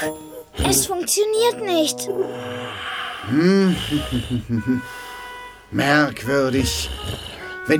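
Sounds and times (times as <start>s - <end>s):
speech: 0.0s - 5.0s, 5.7s - 7.7s
voice imitating snoring: 0.5s - 1.1s, 2.1s - 4.6s, 6.5s - 7.5s.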